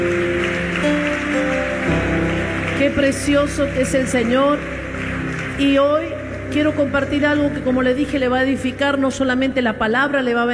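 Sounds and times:
audience applause: 0:00.0 - 0:06.6
speech: 0:02.9 - 0:04.8, 0:05.6 - 0:10.5.

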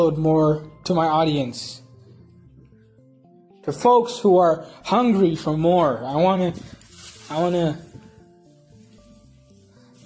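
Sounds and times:
speech: 0:00.0 - 0:01.8, 0:03.6 - 0:07.9
music: 0:00.0 - 0:10.0
plastic bag rustling: 0:06.5 - 0:10.0.

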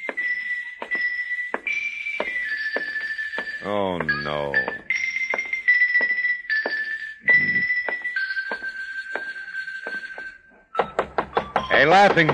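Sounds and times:
steady bright high-pitched tone: 0:00.0 - 0:10.4
speech: 0:03.6 - 0:04.9, 0:11.8 - 0:12.3
knocking on a door: 0:10.8 - 0:12.3.

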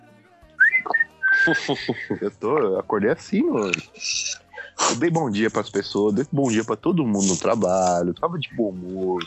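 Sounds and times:
person whistling an imitation of birds singing: 0:00.6 - 0:01.8
laughter: 0:01.3 - 0:05.2
speech: 0:01.5 - 0:09.2.

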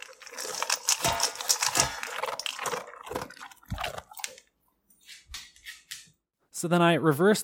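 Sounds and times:
dog eating its food: 0:00.0 - 0:04.5
speech: 0:06.6 - 0:07.4.

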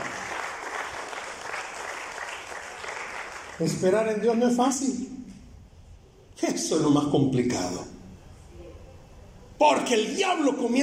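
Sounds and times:
audience applause: 0:00.0 - 0:03.9
speech: 0:03.6 - 0:05.2, 0:06.4 - 0:07.9, 0:09.6 - 0:10.8.

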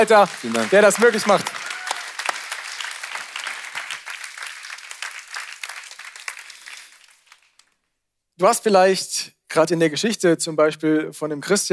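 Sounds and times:
speech: 0:00.0 - 0:01.7, 0:08.4 - 0:11.7
audience applause: 0:00.0 - 0:07.7.

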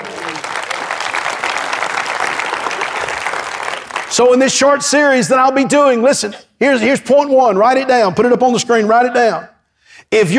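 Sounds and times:
audience clapping: 0:00.0 - 0:04.6
speech: 0:04.1 - 0:09.5, 0:10.1 - 0:10.3.

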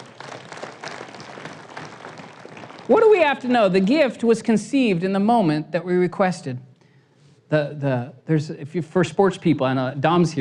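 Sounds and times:
crowd clapping: 0:00.0 - 0:04.0
speech: 0:02.9 - 0:06.7, 0:07.5 - 0:10.3.

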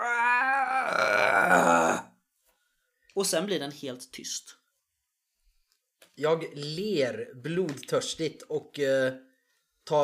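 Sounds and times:
voice imitating a creature's dying whimper: 0:00.0 - 0:02.1
speech: 0:03.2 - 0:04.6, 0:06.2 - 0:10.0.

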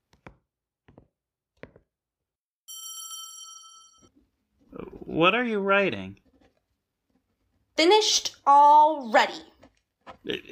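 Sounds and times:
bell rung to summon a servant: 0:02.7 - 0:04.1
speech: 0:05.2 - 0:06.2, 0:07.8 - 0:09.5, 0:10.2 - 0:10.5.

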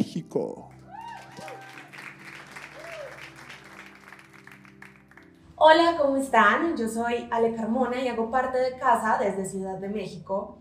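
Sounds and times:
speech: 0:00.4 - 0:00.7, 0:05.6 - 0:10.5
whoops and cheers: 0:00.8 - 0:03.4
audience applause: 0:00.8 - 0:05.4.

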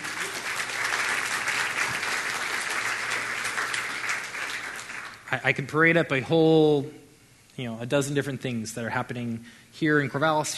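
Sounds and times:
audience round of applause: 0:00.0 - 0:05.3
speech: 0:05.3 - 0:07.0, 0:07.6 - 0:10.5.

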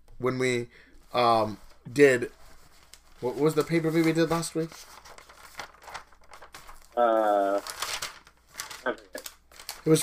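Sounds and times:
speech: 0:00.2 - 0:02.4, 0:03.2 - 0:05.1, 0:07.0 - 0:07.8, 0:08.8 - 0:09.1, 0:09.8 - 0:10.0
paper crinkling: 0:01.4 - 0:10.0.

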